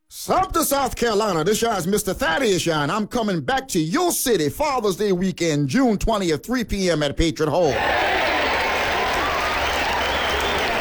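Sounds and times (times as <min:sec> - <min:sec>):
speech: 0:00.1 - 0:08.2
audience clapping: 0:07.7 - 0:10.7.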